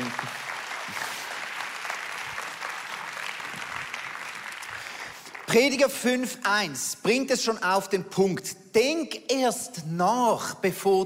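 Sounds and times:
audience applause: 0.0 - 5.8
speech: 5.5 - 11.0.

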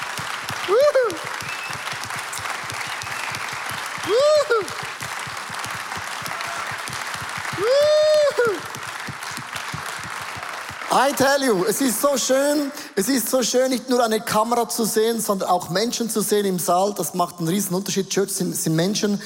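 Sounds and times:
audience applause: 0.0 - 12.0
speech: 11.0 - 19.2.

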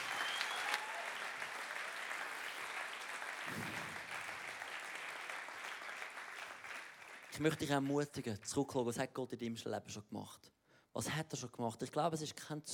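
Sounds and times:
audience applause: 0.0 - 7.6
speech: 7.4 - 12.7.

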